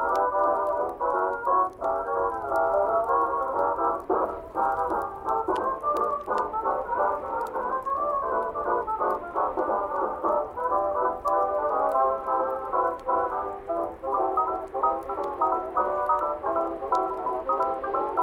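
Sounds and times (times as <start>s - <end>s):
oldies music playing softly from another room: 0.0s - 18.2s.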